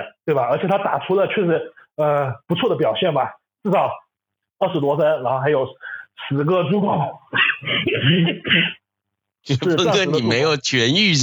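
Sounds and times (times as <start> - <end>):
speech: 0.3 - 4.0, 4.6 - 8.8, 9.4 - 11.2
cough: 7.3 - 8.9.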